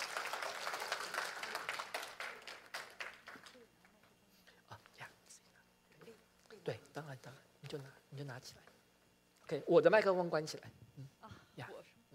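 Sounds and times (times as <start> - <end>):
applause: 0.0 - 4.0
speech: 6.6 - 8.7, 9.5 - 11.7.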